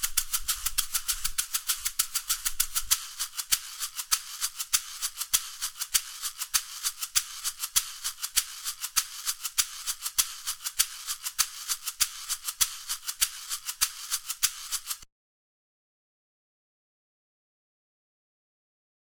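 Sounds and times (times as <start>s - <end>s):
maracas: 0.0s - 15.1s.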